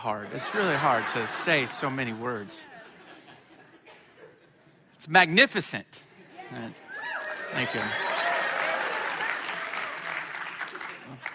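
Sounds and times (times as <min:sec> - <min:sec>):
speech: 0:00.0 - 0:02.8, 0:05.0 - 0:06.8, 0:07.5 - 0:08.0
laughter: 0:00.1 - 0:04.8
audience applause: 0:06.9 - 0:11.3.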